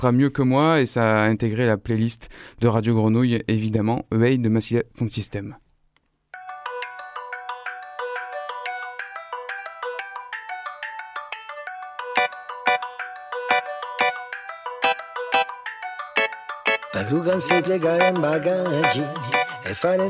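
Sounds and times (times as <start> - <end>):
speech: 0.0 - 5.6, 17.2 - 20.0
chiming melody of quick repeated notes: 11.0 - 20.0.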